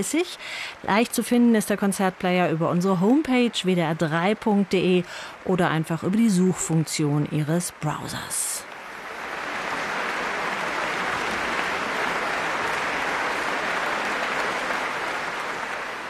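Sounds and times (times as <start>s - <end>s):
speech: 0.0s - 8.7s
concert audience applause: 8.9s - 16.0s.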